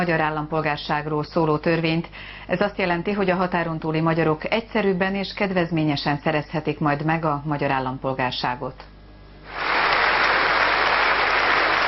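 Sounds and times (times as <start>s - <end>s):
speech: 0.0s - 8.9s
parliament applause after law passed: 9.5s - 11.8s.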